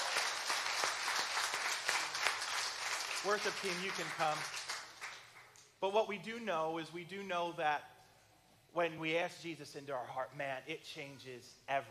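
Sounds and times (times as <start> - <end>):
audience clapping: 0.0 - 5.6
speech: 3.2 - 4.6, 5.8 - 7.9, 8.7 - 11.9.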